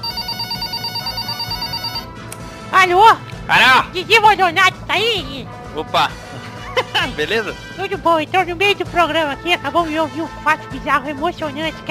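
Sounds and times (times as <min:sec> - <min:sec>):
mobile phone ringing: 0:00.0 - 0:02.1
speech: 0:02.8 - 0:06.2, 0:07.1 - 0:11.8
laughter: 0:06.3 - 0:07.3.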